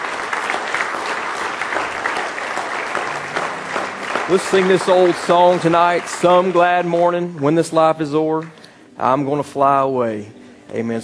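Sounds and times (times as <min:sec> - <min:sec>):
audience clapping hands in praise: 0:00.0 - 0:08.7
speech: 0:04.3 - 0:11.0.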